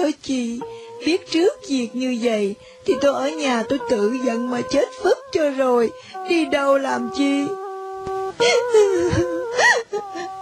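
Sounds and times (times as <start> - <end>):
speech: 0.0 - 7.6, 8.4 - 10.4
woman weeping with quavering wails: 8.4 - 10.3.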